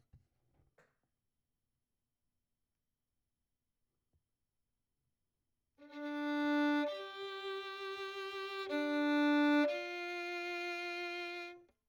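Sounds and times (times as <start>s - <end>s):
violin: 5.8s - 11.7s.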